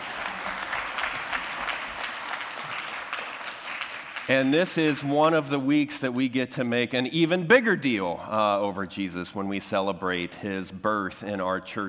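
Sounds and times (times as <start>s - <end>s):
audience applause: 0.0s - 5.0s
speech: 4.3s - 11.8s.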